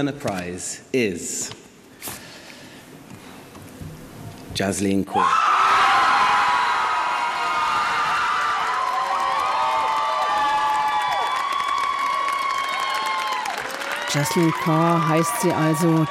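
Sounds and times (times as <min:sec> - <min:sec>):
speech: 0:00.0 - 0:02.2, 0:04.6 - 0:05.5, 0:14.1 - 0:16.0
audience applause and cheering in London: 0:05.3 - 0:16.0.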